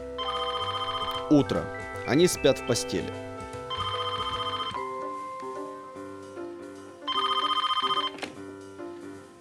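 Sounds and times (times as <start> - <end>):
telephone bell ringing: 0.2 - 2.7, 3.7 - 5.1, 7.1 - 8.2
speech: 1.3 - 3.3.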